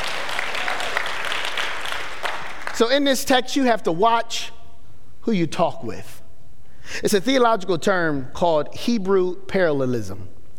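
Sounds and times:
audience clapping: 0:00.0 - 0:03.0
speech: 0:02.8 - 0:04.6, 0:05.2 - 0:06.2, 0:06.9 - 0:10.3.

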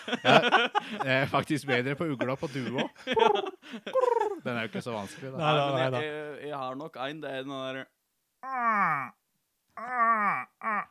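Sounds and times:
laughter: 0:00.0 - 0:06.1
speech: 0:00.0 - 0:09.2, 0:09.8 - 0:10.8
person vocally imitating a moose giving birth: 0:08.4 - 0:09.2, 0:09.8 - 0:10.8.

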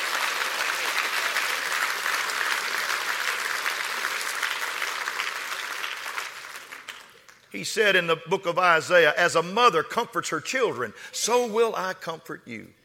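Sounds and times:
audience clapping hands: 0:00.0 - 0:07.5
speech: 0:07.5 - 0:12.8.

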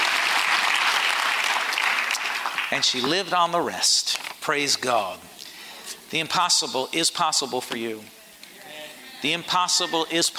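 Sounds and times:
audience clapping: 0:00.0 - 0:03.3
speech: 0:02.7 - 0:05.3, 0:06.1 - 0:08.2, 0:09.2 - 0:10.3.

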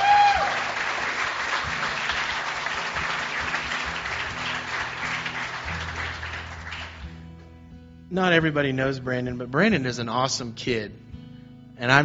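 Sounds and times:
audience clapping: 0:00.0 - 0:07.2
speech: 0:08.1 - 0:11.0, 0:11.8 - 0:12.0.

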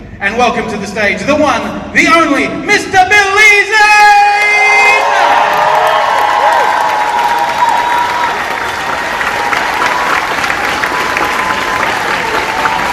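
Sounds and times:
speech: 0:00.2 - 0:04.2
audience applause and cheering greeting guest Billy Zane onto a stage: 0:04.6 - 0:12.9.

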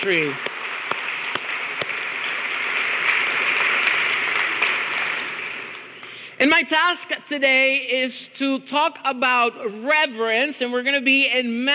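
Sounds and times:
speech: 0:00.0 - 0:00.5, 0:06.4 - 0:11.7
audience applause: 0:00.0 - 0:06.0.

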